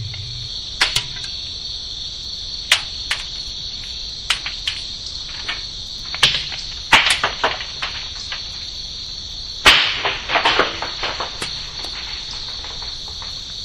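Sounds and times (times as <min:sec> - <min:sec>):
rain of rocks: 0:04.3 - 0:08.7, 0:09.7 - 0:13.6.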